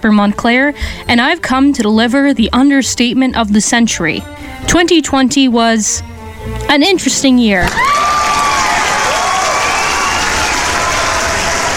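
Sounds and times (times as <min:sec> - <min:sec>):
speech: 0:00.0 - 0:08.3
audience applause and cheering: 0:07.7 - 0:11.7.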